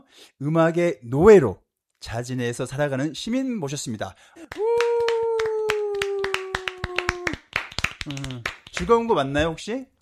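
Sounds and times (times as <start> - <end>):
speech: 0.1 - 4.8, 8.0 - 9.9
group clapping hands: 4.4 - 9.4.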